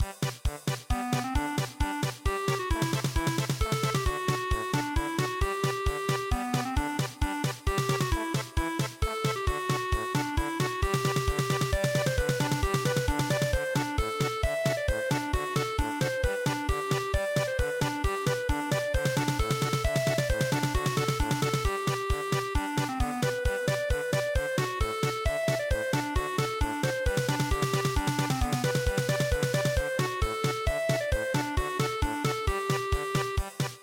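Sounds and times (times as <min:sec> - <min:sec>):
polka music: 0:00.9 - 0:33.8.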